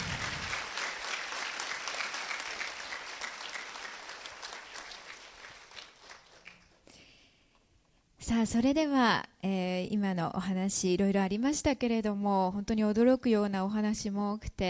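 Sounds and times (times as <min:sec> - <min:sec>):
audience applause: 0:00.0 - 0:06.9
speech: 0:08.3 - 0:14.6.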